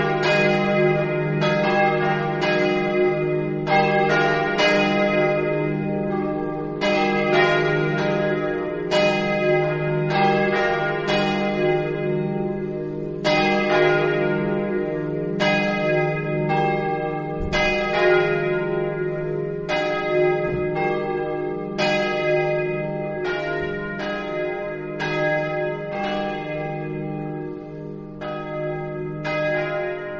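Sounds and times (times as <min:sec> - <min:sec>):
bells ringing: 0:00.0 - 0:30.1.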